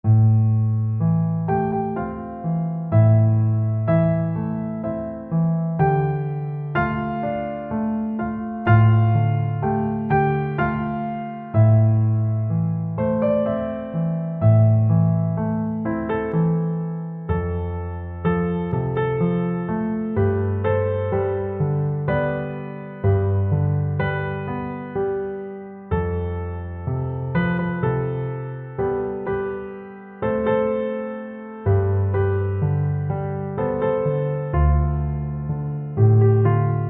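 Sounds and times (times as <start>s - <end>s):
piano: 0.0s - 36.8s.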